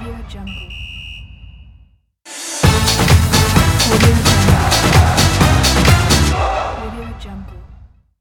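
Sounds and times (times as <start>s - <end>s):
sport logo intro music: 2.3s - 6.8s.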